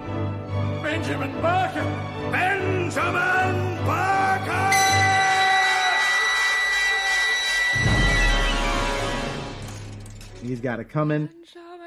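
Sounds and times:
speech: 0:00.9 - 0:04.7, 0:10.4 - 0:11.6
whistle going off: 0:04.7 - 0:09.4.

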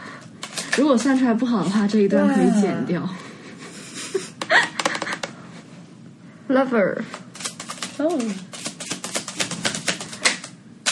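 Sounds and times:
tarot cards being shuffled: 0:00.2 - 0:01.3, 0:07.1 - 0:10.9
speech: 0:00.8 - 0:03.3, 0:06.5 - 0:07.2, 0:08.0 - 0:08.5.

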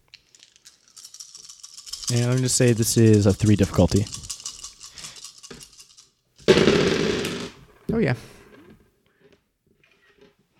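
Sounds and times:
dice rattling: 0:00.1 - 0:07.5
speech: 0:02.1 - 0:04.2, 0:08.0 - 0:08.4.

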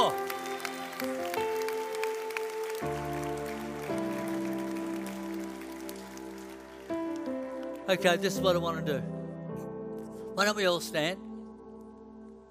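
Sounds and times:
audience applause: 0:00.0 - 0:08.4
speech: 0:07.9 - 0:09.2, 0:10.4 - 0:11.3.

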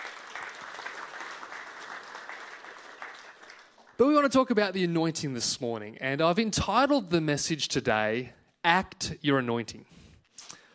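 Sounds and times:
audience applause during a church service: 0:00.0 - 0:04.0
speech: 0:04.0 - 0:10.0.

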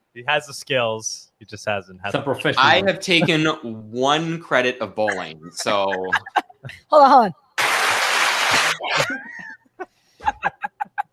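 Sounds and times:
speech: 0:00.2 - 0:07.4
laughter: 0:00.3 - 0:06.8, 0:08.5 - 0:09.6, 0:10.2 - 0:11.1
static-sounding clapping: 0:07.6 - 0:08.8.

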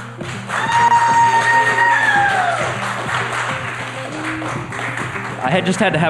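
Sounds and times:
audience applause: 0:00.2 - 0:05.5
audience whooping: 0:00.5 - 0:02.9.

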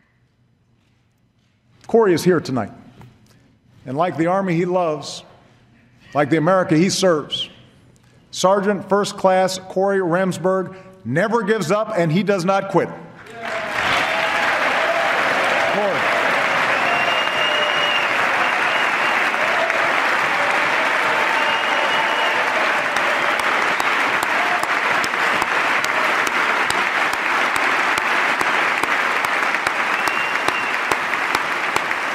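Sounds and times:
speech: 0:01.9 - 0:02.8, 0:03.9 - 0:05.3, 0:06.1 - 0:07.5, 0:08.3 - 0:13.0
loud applause from a large audience: 0:13.2 - 0:32.1.

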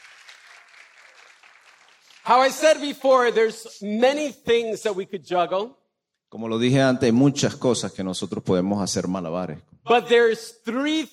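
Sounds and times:
audience applause: 0:00.0 - 0:02.7
speech: 0:02.3 - 0:11.1.

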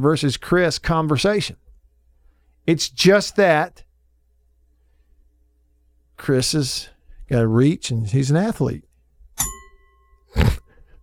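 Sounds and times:
speech: 0:00.0 - 0:01.6, 0:02.6 - 0:03.8, 0:06.2 - 0:09.5
boxing bell rung in studio: 0:09.4 - 0:10.3.

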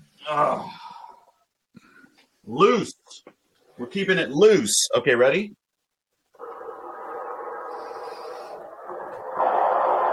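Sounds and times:
speech: 0:00.3 - 0:00.8, 0:02.4 - 0:05.6
white noise machine hissing: 0:06.3 - 0:10.1.

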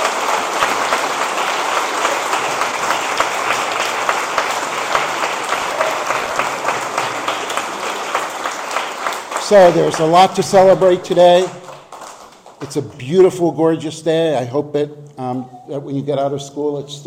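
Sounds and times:
audience applause: 0:00.0 - 0:13.3
speech: 0:09.5 - 0:11.6, 0:12.6 - 0:17.0.

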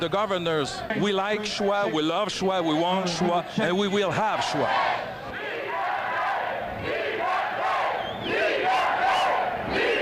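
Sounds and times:
speech: 0:00.0 - 0:05.0
large rally crowd chanting and shouting: 0:00.0 - 0:10.0
high whistles: 0:07.8 - 0:09.4.

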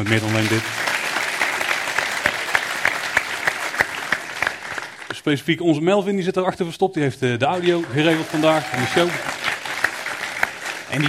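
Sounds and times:
speech: 0:00.0 - 0:00.9, 0:05.2 - 0:09.5
audience applause: 0:00.0 - 0:05.2, 0:07.5 - 0:11.0.

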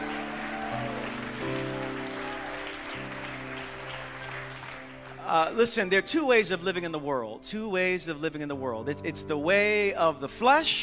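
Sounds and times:
audience applause: 0:00.0 - 0:05.6
sustained keyboard chords: 0:00.0 - 0:10.8
speech: 0:05.3 - 0:10.8.

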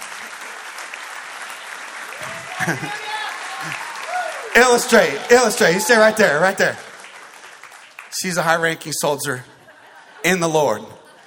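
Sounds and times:
audience applause: 0:00.0 - 0:08.8
speech: 0:02.2 - 0:03.0, 0:03.6 - 0:03.9, 0:04.6 - 0:06.9, 0:08.2 - 0:09.6, 0:10.2 - 0:11.0
laughter: 0:02.2 - 0:04.0, 0:09.3 - 0:11.2.

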